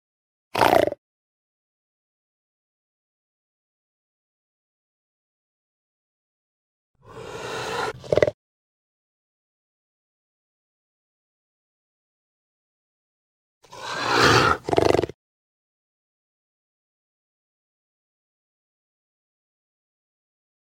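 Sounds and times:
puma voice: 7.0s - 8.4s, 13.7s - 15.2s.

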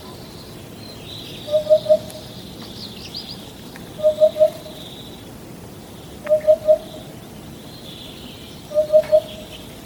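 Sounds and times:
hoopoe calling: 1.4s - 2.2s, 4.0s - 4.8s, 6.3s - 7.0s, 8.7s - 9.6s.

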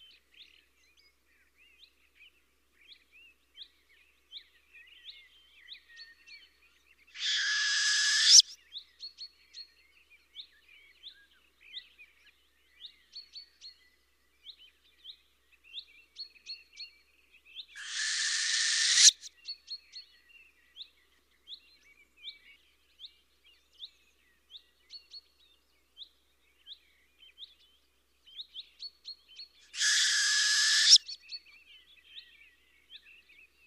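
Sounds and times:
northern hawk owl voice: 7.2s - 8.4s, 17.8s - 19.3s, 29.8s - 31.0s.

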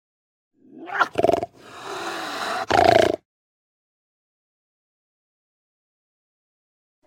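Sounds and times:
puma voice: 0.6s - 3.2s.

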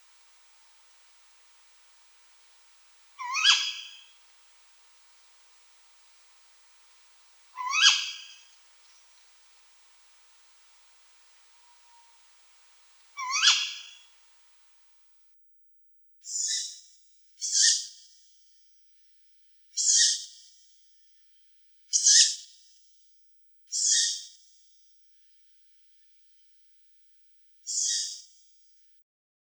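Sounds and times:
tawny owl calling: 3.2s - 4.1s, 7.6s - 8.6s, 13.2s - 14.1s, 16.3s - 16.8s, 17.4s - 17.9s, 19.8s - 20.2s, 21.9s - 22.4s, 23.7s - 24.3s, 27.7s - 28.2s.

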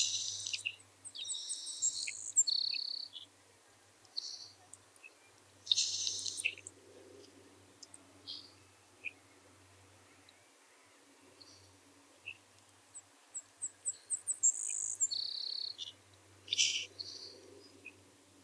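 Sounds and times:
savannah sparrow calling: 0.0s - 3.2s, 5.7s - 6.7s, 13.6s - 18.0s.

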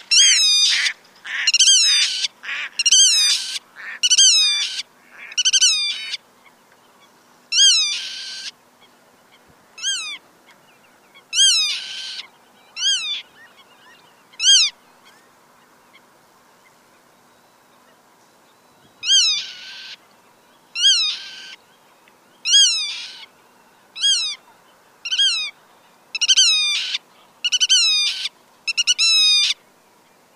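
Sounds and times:
black-tailed godwit calling: 0.0s - 6.2s, 7.0s - 8.6s, 11.2s - 14.8s, 19.0s - 20.0s, 20.8s - 21.6s, 22.4s - 23.3s, 24.0s - 29.6s.

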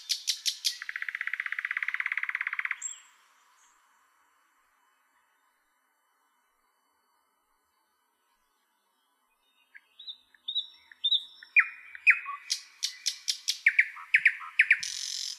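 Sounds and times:
common nightingale singing: 0.0s - 3.9s, 8.4s - 15.3s.

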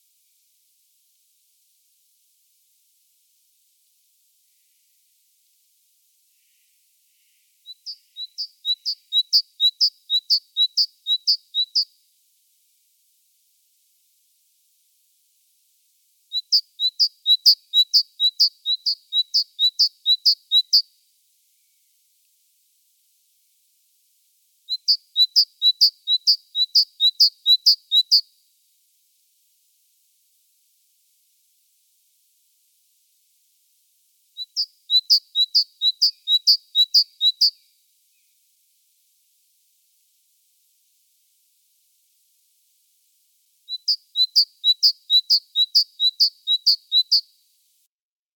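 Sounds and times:
great tit calling: 7.7s - 11.9s, 16.4s - 20.8s, 24.7s - 28.2s, 34.4s - 37.6s, 43.7s - 47.2s.

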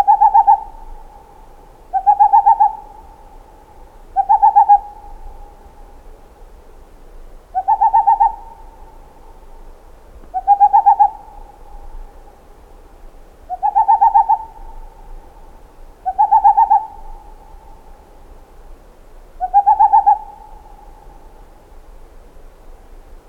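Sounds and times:
boreal owl voice: 0.0s - 6.0s, 7.5s - 12.5s, 13.5s - 18.1s, 19.4s - 21.4s.

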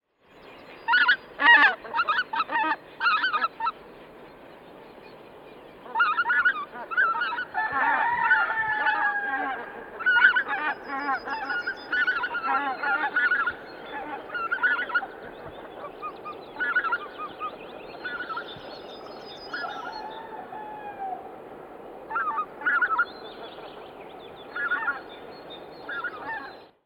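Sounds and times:
white-fronted goose calling: 0.9s - 3.8s, 5.8s - 18.4s, 22.1s - 23.1s, 24.5s - 25.0s, 25.9s - 26.6s.

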